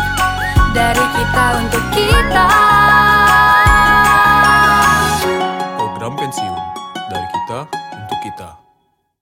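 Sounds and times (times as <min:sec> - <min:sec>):
jingle: 0:00.2 - 0:07.5.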